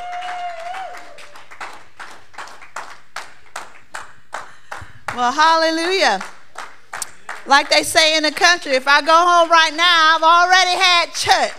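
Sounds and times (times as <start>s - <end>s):
audience hand clapping: 0.0s - 8.4s
speech: 5.2s - 6.3s, 7.4s - 11.5s.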